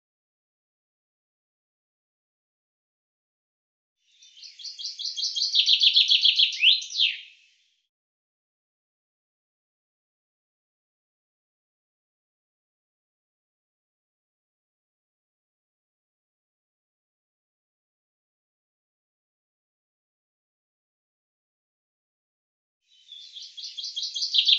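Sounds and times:
common chaffinch singing: 0:04.1 - 0:07.4, 0:22.9 - 0:24.5.

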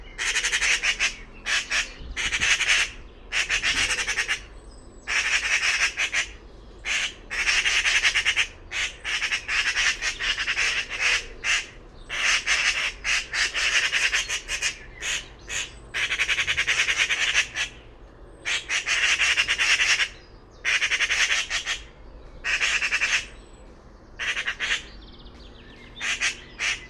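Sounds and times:
bird calling with grating buzzy squawks: 0:00.0 - 0:17.8, 0:18.4 - 0:23.4, 0:24.2 - 0:24.9, 0:25.9 - 0:26.8.

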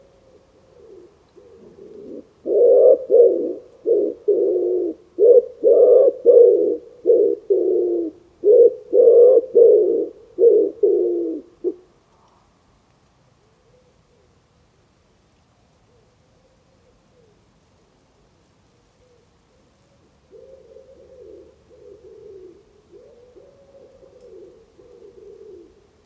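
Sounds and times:
bird giving low hoarse cooing notes: 0:00.0 - 0:11.9, 0:13.4 - 0:14.4, 0:15.8 - 0:17.6, 0:18.7 - 0:26.0.

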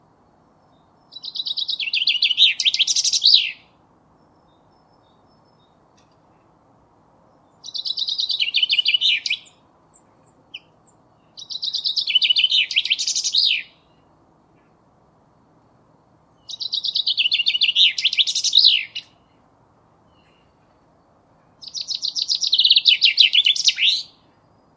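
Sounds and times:
common chaffinch singing: 0:00.7 - 0:03.7, 0:07.5 - 0:09.6, 0:10.3 - 0:14.0, 0:16.4 - 0:19.3, 0:21.6 - 0:24.7.

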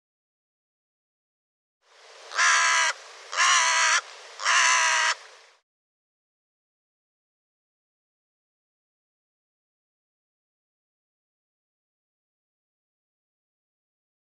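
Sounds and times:
harsh bird caws: 0:02.3 - 0:05.3.

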